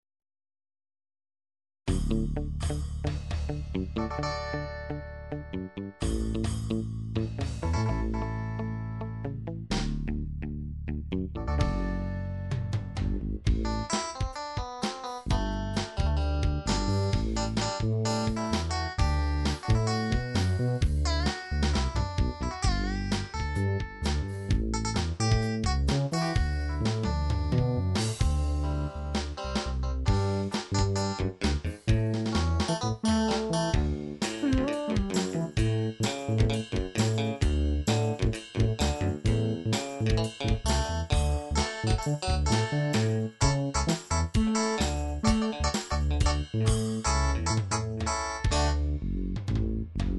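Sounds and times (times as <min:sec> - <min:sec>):
muted guitar: 0:02.0 - 0:50.0.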